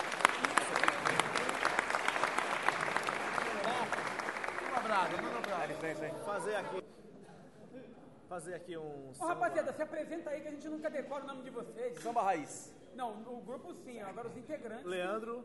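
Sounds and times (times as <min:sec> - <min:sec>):
audience applause: 0:00.0 - 0:06.8
crowd cheering: 0:00.0 - 0:06.8
speech: 0:05.0 - 0:06.9, 0:08.4 - 0:15.4.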